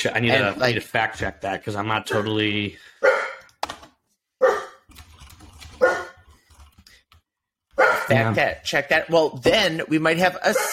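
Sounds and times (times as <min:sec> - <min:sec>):
speech: 0:00.0 - 0:03.2, 0:08.1 - 0:10.7
pet dog barking: 0:02.1 - 0:02.4, 0:03.0 - 0:03.5, 0:04.4 - 0:04.8, 0:05.8 - 0:06.2, 0:07.8 - 0:08.2, 0:10.5 - 0:10.7.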